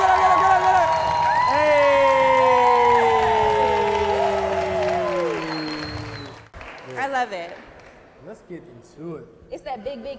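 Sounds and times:
audience cheering: 0.0 - 6.6
audience applause: 0.0 - 8.0
speech: 8.4 - 10.1.

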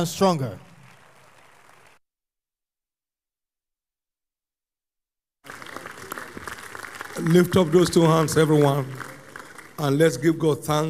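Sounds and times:
speech: 0.0 - 0.6, 7.2 - 9.1, 9.8 - 10.8
audience clapping: 0.0 - 2.0, 5.4 - 10.8.

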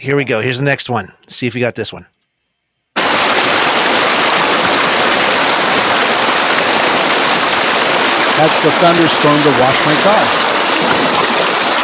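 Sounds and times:
speech: 0.0 - 2.2, 8.4 - 10.4
waterfall: 3.0 - 11.8.

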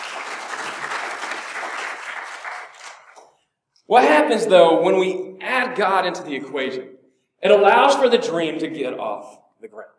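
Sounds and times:
audience applause: 0.0 - 3.2
speech: 3.9 - 9.9.

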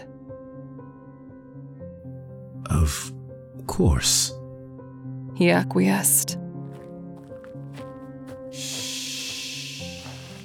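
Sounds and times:
speech: 2.7 - 4.4, 5.4 - 6.4
stim injection hissing like a pressurized injector firing: 8.6 - 10.4.

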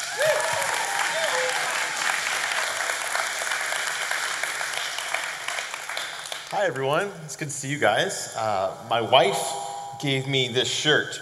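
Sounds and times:
audience applauding to welcome a speaker to the stage: 0.0 - 6.7
speech: 6.5 - 11.1.

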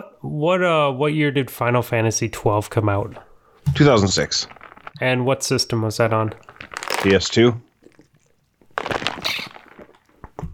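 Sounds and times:
speech: 0.3 - 7.7
plastic water bottle being squeezed and handled: 3.7 - 10.4.

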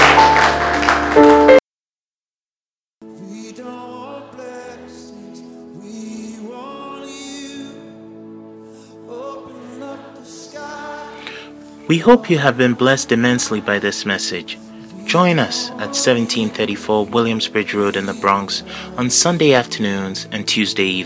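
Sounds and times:
audience applauding: 0.0 - 1.6
speech: 11.9 - 21.0.

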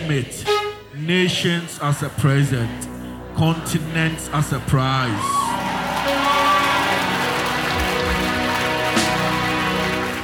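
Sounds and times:
speech: 0.1 - 5.4
audience clapping: 5.4 - 10.2.

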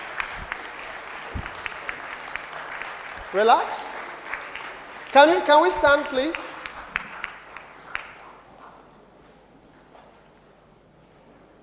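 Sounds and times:
audience applauding: 0.0 - 8.6
speech: 3.3 - 4.0, 5.2 - 6.5.

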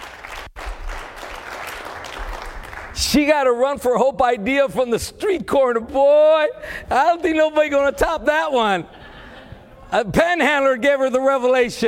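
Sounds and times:
audience clapping applause: 0.0 - 3.0
speech: 3.0 - 9.0, 9.9 - 11.8.

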